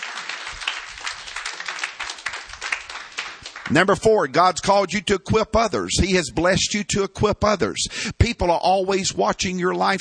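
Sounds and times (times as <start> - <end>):
audience clapping: 0.0 - 4.2
speech: 3.7 - 9.9.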